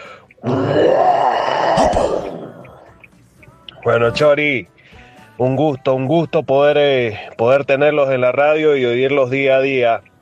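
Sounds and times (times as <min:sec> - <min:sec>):
caller imitating a beast's roar: 0:00.4 - 0:02.9
speech: 0:03.9 - 0:04.8, 0:05.4 - 0:10.1.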